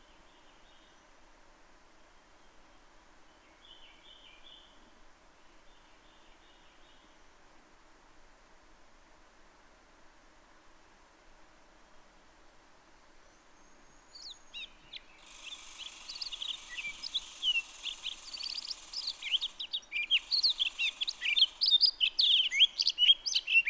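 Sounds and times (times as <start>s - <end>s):
Townsend's solitaire singing a rambling warble: 15.2s - 23.6s.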